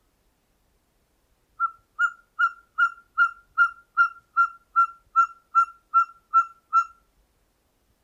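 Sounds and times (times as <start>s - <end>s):
ferruginous pygmy owl calling: 1.6s - 7.1s.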